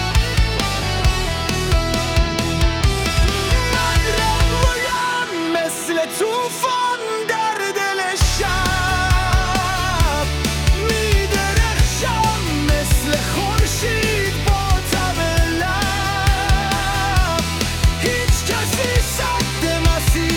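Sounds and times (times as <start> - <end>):
heavy electric guitar riff: 0.0 - 20.3.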